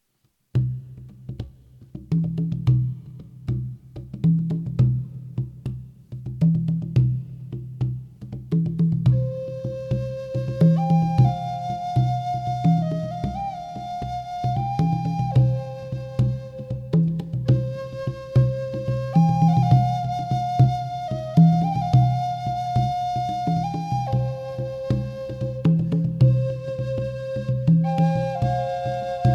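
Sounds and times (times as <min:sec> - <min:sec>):
drum: 0:00.5 - 0:29.3
flute: 0:09.0 - 0:29.3.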